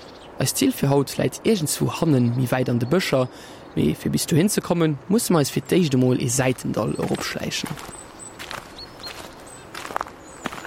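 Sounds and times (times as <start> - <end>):
speech: 0.4 - 8.0
footsteps on wet slate along a forest path in the Kammerwald: 7.0 - 10.6.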